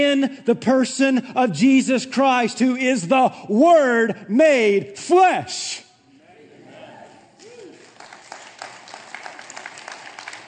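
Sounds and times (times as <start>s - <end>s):
speech: 0.0s - 5.9s
sparse golf clap applause: 7.4s - 10.4s.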